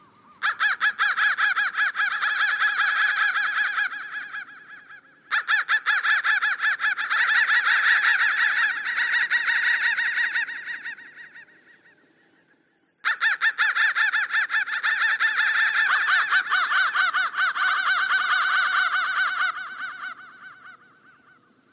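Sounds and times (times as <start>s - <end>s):
crow calls: 0.0s - 12.0s, 13.0s - 21.5s.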